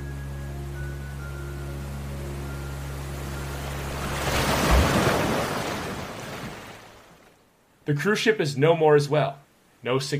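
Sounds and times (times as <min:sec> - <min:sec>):
tide washing over sand: 0:03.2 - 0:07.3
speech: 0:07.9 - 0:10.1.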